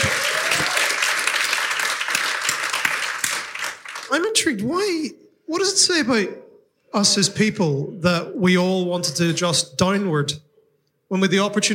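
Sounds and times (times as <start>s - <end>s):
audience applause: 0.0s - 4.2s
speech: 4.1s - 10.5s, 11.1s - 11.7s.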